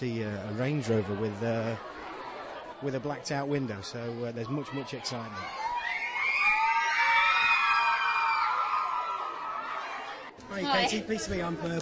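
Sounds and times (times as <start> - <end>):
speech: 0.0 - 2.0, 2.8 - 5.7, 10.5 - 11.8
laughter: 0.4 - 4.6
large crowd cheering and shouting: 4.0 - 11.4.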